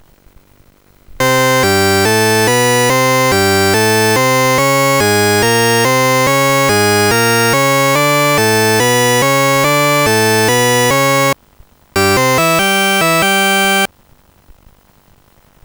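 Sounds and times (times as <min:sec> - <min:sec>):
tune: 0:01.2 - 0:11.4, 0:12.0 - 0:13.9.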